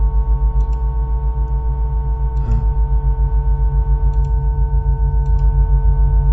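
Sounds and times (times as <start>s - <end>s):
deep throbbing hum inside a gasometer: 0.0s - 6.3s
creak inside a gasometer: 2.4s - 2.8s.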